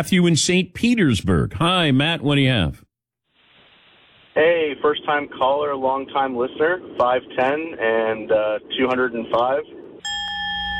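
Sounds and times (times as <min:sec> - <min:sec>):
speech: 0:00.0 - 0:02.8, 0:04.4 - 0:10.2
bell ringing: 0:10.0 - 0:10.7.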